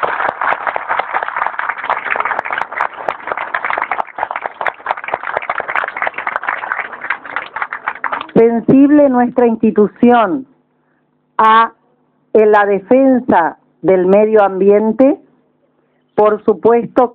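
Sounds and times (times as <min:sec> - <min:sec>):
audience applauding: 0:00.0 - 0:08.4
speech: 0:08.4 - 0:10.5, 0:11.4 - 0:11.8, 0:12.4 - 0:15.2, 0:16.2 - 0:17.1.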